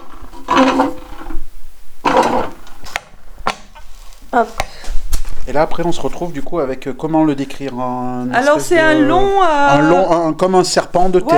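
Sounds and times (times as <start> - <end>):
clay extruder piston pushing out a coil: 0.0 - 4.8
speech: 0.5 - 1.0, 4.4 - 4.7, 5.5 - 11.3.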